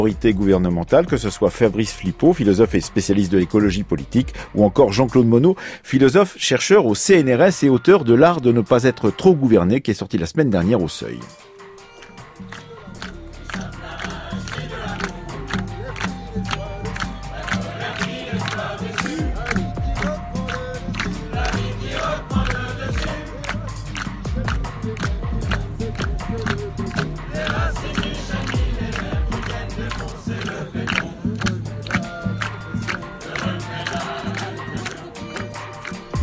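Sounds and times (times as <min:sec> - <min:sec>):
speech: 0:00.0 - 0:11.5
crowd voices at an Extinction Rebellion gathering in Parc de la Villette: 0:12.4 - 0:36.2.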